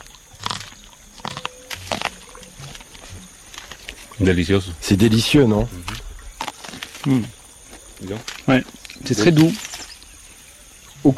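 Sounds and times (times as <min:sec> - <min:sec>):
crunchy bites and chewing on a fresh sweet corn cob: 0:00.0 - 0:04.2, 0:05.7 - 0:08.9
speech: 0:04.2 - 0:06.0, 0:07.0 - 0:07.4, 0:08.0 - 0:09.7.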